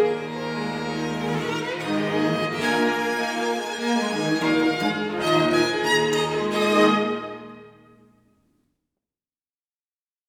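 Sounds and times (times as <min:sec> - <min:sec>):
string quartet: 0:00.0 - 0:08.1.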